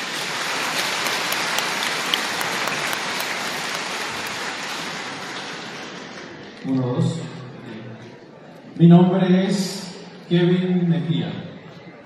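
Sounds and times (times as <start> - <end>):
audience applause: 0.0 - 6.6
speech: 6.6 - 7.3, 8.8 - 9.7, 10.3 - 11.4.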